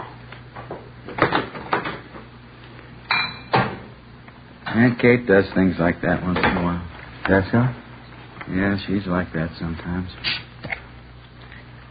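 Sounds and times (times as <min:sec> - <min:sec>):
dishes clattering while being cleared: 0:03.1 - 0:03.8
speech: 0:04.8 - 0:07.8, 0:08.5 - 0:10.4.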